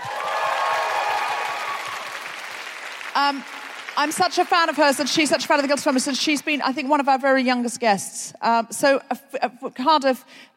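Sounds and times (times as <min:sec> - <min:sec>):
audience applause: 0:00.0 - 0:04.9
speech: 0:03.2 - 0:10.5.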